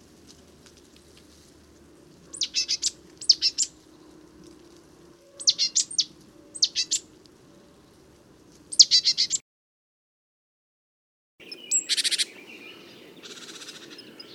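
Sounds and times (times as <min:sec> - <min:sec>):
great tit calls: 0:02.3 - 0:03.7, 0:05.4 - 0:07.0, 0:08.7 - 0:09.4, 0:11.4 - 0:14.3.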